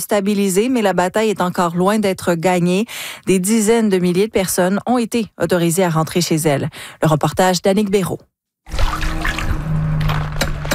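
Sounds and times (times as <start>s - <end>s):
speech: 0.0s - 9.0s
swimming pool water sloshing and dripping as a skimmer net is dipped in: 8.7s - 10.2s.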